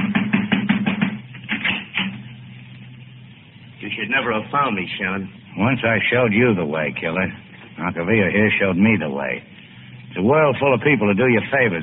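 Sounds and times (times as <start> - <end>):
knocking on a door: 0.0 - 1.2
speech: 4.0 - 9.5, 10.1 - 11.8.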